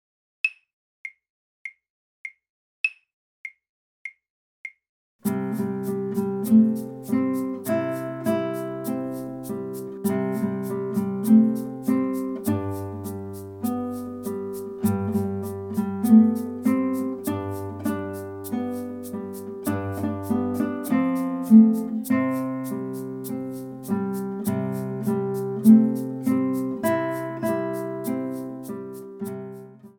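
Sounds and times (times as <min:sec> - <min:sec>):
guitar playing a folk song from a guitar tutor: 0:05.2 - 0:29.9.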